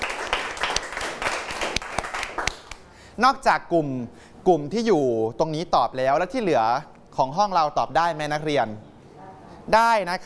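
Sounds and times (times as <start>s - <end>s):
classroom applause for a student: 0.0s - 2.9s
speech: 3.2s - 8.9s, 9.7s - 10.2s.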